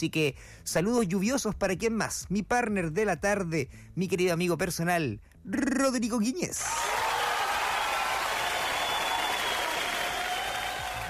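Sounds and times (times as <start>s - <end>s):
speech: 0.0s - 7.1s
applause: 6.6s - 11.0s.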